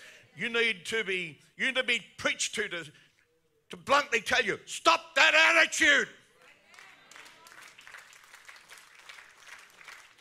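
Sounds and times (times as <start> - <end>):
speech: 0.4 - 3.1, 3.7 - 6.2
audience clapping: 6.7 - 10.2.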